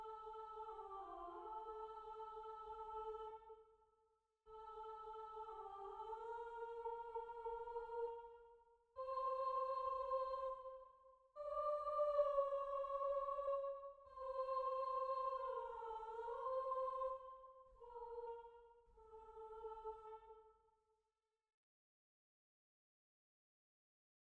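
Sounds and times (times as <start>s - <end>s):
soprano singing: 0.0s - 3.5s, 4.5s - 8.4s, 9.0s - 10.8s, 11.4s - 20.3s.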